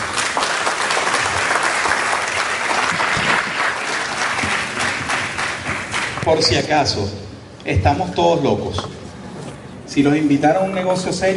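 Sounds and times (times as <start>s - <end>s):
audience applause: 0.0s - 6.3s
speech: 6.3s - 9.0s, 9.9s - 11.3s.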